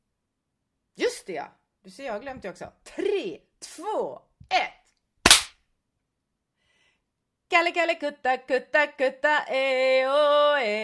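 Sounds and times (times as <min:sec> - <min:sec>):
speech: 0:01.0 - 0:04.8, 0:07.5 - 0:10.8
single sharp loud hand clap: 0:05.3 - 0:05.5.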